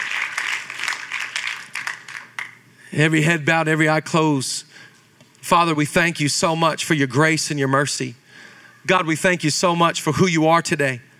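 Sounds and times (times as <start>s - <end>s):
crowd applauding: 0.0s - 2.6s
speech: 2.9s - 8.2s, 8.8s - 11.1s.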